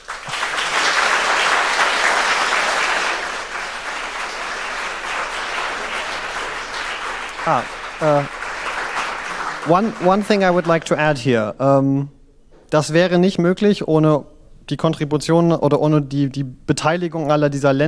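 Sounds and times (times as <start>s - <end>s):
audience applause: 0.0s - 11.2s
speech: 7.4s - 8.4s, 9.6s - 17.8s.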